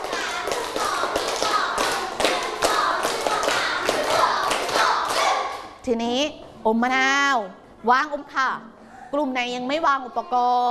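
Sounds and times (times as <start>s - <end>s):
students clapping together in rhythmic steps: 0.0s - 5.8s
speech: 5.8s - 10.6s.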